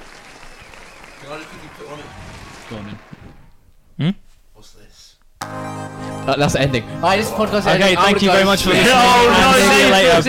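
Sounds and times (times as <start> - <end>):
clapping: 0.0 - 3.2
speech: 1.2 - 3.2, 4.0 - 10.2.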